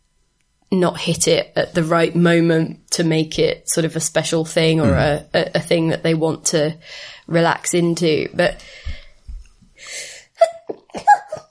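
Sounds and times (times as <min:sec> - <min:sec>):
speech: 0:00.7 - 0:09.0
person sneezing: 0:04.8 - 0:05.2.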